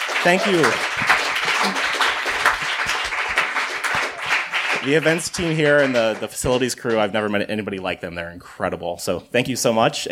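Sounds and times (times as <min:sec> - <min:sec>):
audience applause: 0:00.0 - 0:06.7
speech: 0:00.2 - 0:01.9, 0:04.8 - 0:10.1.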